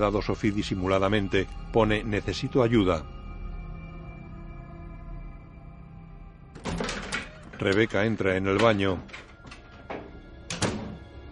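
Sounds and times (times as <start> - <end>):
speech: 0.0 - 3.2, 7.6 - 9.2
door closing in a supernatural horror film: 6.6 - 11.2.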